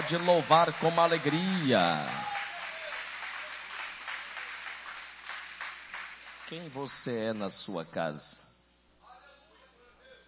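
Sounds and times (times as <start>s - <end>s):
audience applauding: 0.0s - 6.8s
speech: 0.1s - 2.4s, 6.5s - 8.4s.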